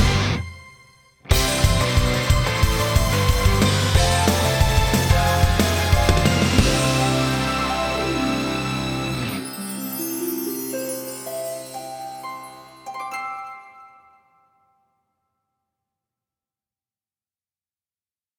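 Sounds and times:
short instrumental background music: 0:00.0 - 0:13.9.

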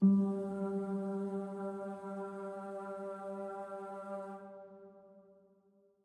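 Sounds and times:
cave music energy harmony note G2: 0:00.0 - 0:05.0.

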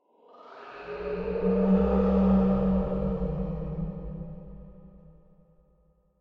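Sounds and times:
eerie distant sound: 0:00.4 - 0:05.0.

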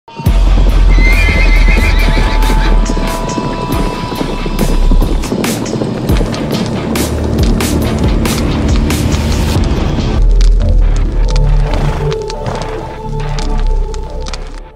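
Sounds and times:
cinematic music: 0:00.1 - 0:14.7.

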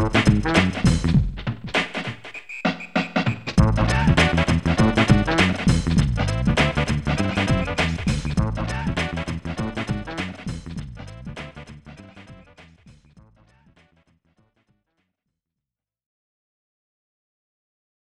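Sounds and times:
jazzy hip hop beats: 0:00.0 - 0:13.3.

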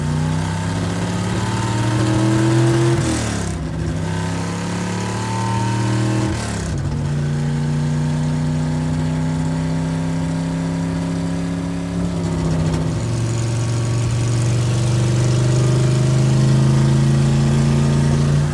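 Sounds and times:
muscle car driving: 0:00.0 - 0:18.5.

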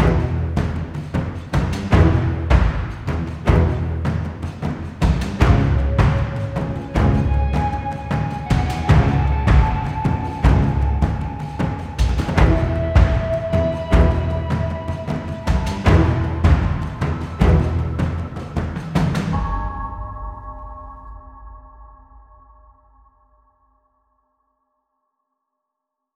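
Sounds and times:
combat music: 0:00.0 - 0:20.6.

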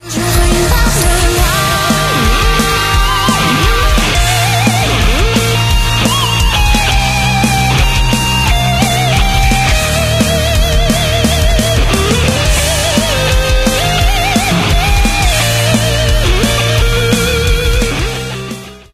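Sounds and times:
background music: 0:00.0 - 0:18.9.

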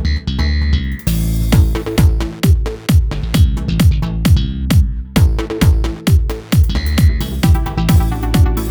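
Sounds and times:
funk intro: 0:00.2 - 0:08.6.

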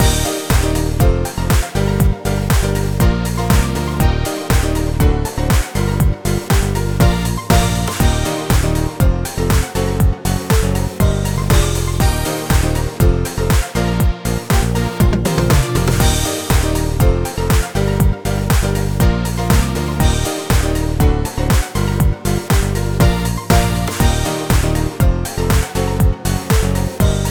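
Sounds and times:
warm-up music at 120 BPM in C: 0:00.0 - 0:27.2.

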